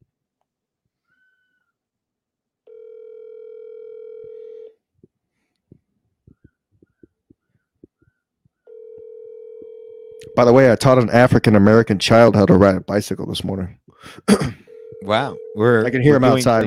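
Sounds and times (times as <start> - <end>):
telephone tone while a call is placed: 2.7 - 4.8, 8.7 - 10.4, 14.7 - 16.6
speech: 10.4 - 16.6.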